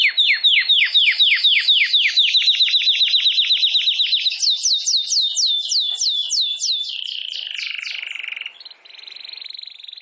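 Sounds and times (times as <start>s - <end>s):
domestic canary singing: 0.0s - 10.0s.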